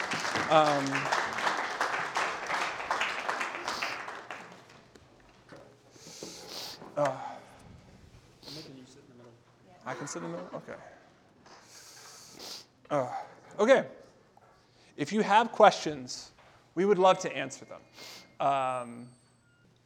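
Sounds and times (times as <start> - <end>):
audience clapping: 0.0 - 5.3
speech: 0.4 - 1.2, 7.0 - 7.3, 9.9 - 11.0, 12.9 - 14.0, 15.0 - 19.2.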